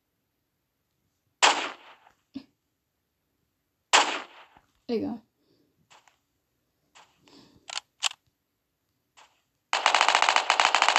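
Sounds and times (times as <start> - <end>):
gunshots in a Roblox shooting game: 1.4 - 2.1, 3.9 - 4.6, 9.2 - 10.9
speech: 4.9 - 5.3.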